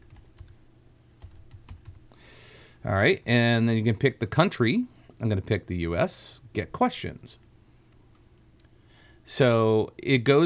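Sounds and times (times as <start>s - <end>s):
typing on a computer keyboard: 0.0s - 0.6s, 1.2s - 2.0s
speech: 2.8s - 7.4s, 9.3s - 10.4s.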